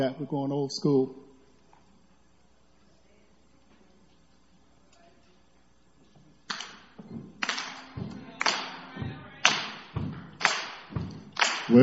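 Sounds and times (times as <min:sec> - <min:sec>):
speech: 0:00.0 - 0:01.2
rhythmic foot stomps: 0:06.2 - 0:11.8
rhythmic hand claps: 0:06.5 - 0:11.8.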